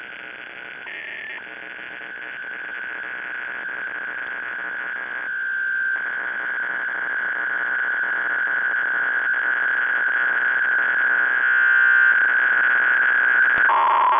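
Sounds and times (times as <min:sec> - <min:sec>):
PSK QPSK parallel radio data signal: 0:00.0 - 0:14.1.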